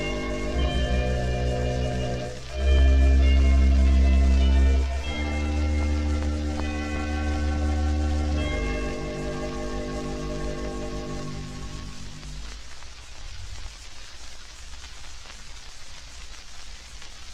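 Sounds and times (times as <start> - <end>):
organ solo: 0.0 - 12.6.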